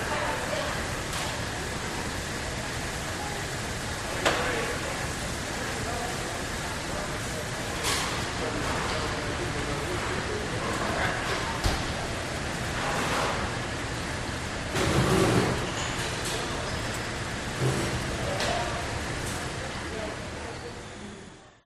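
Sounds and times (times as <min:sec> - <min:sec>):
industrial factory noise: 0:00.0 - 0:21.6.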